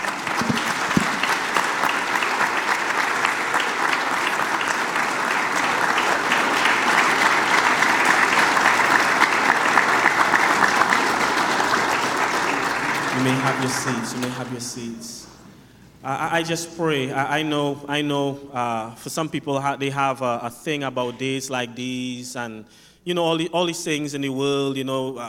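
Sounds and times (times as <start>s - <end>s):
audience applause: 0.0s - 14.7s
speech: 13.6s - 15.3s, 16.0s - 25.2s.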